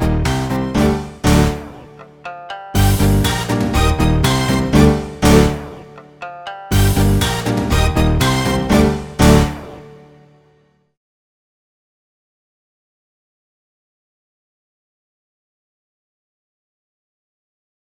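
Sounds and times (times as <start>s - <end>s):
musical duet in G minor: 0.8s - 10.4s.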